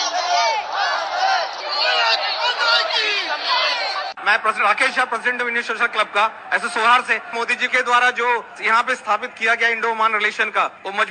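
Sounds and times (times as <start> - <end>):
crowd of Indians in Muscat chanting slogans: 0.0 - 4.2
speech: 4.3 - 11.0.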